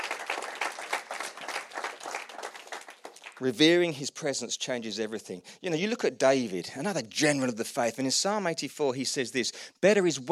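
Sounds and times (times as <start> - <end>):
audience applause: 0.0 - 3.7
speech: 3.4 - 10.3.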